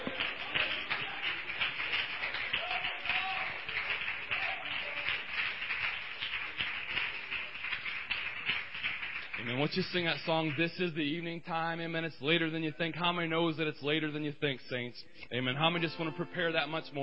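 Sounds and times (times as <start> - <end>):
church congregation applauding: 0.0 - 11.0
speech: 9.5 - 17.0.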